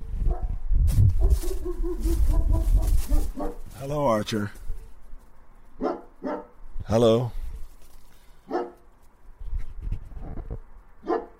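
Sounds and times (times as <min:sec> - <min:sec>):
dog barking: 0:00.3 - 0:00.5, 0:01.2 - 0:03.7, 0:05.8 - 0:06.5, 0:08.5 - 0:08.9, 0:11.0 - 0:11.3
speech: 0:03.9 - 0:04.6, 0:06.9 - 0:07.4.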